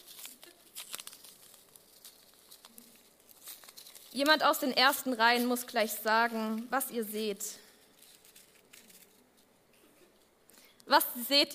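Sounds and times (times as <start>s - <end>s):
package being unwrapped crinkling and tearing: 0.0s - 4.4s, 7.7s - 9.5s
speech: 4.2s - 7.6s, 10.9s - 11.5s.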